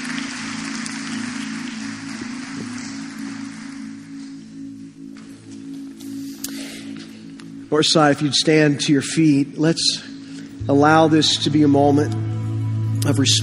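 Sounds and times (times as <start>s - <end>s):
audience applause: 0.0s - 4.2s
low sustained hum: 0.0s - 13.4s
speech: 7.7s - 10.1s, 10.7s - 12.2s, 13.0s - 13.4s.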